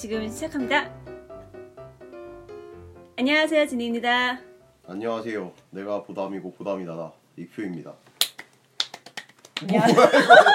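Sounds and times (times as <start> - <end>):
speech: 0.0 - 1.1, 3.2 - 8.0, 9.6 - 10.5
hand claps: 8.2 - 9.9
people laughing: 9.6 - 10.5.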